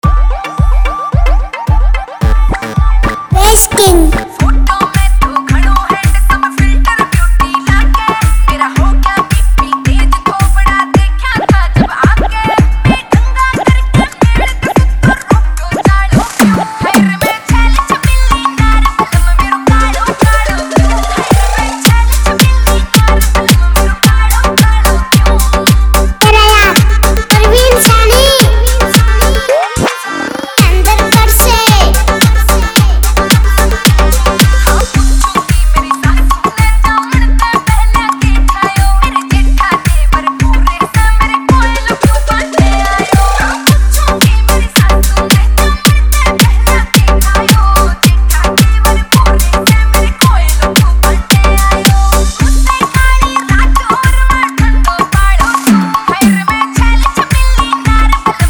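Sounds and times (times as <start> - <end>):
hard bass remix: 0.0 - 58.4.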